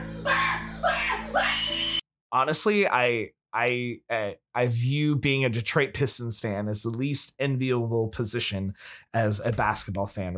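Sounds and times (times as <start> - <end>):
person screaming: 0.0 - 2.0
speech: 2.4 - 10.3.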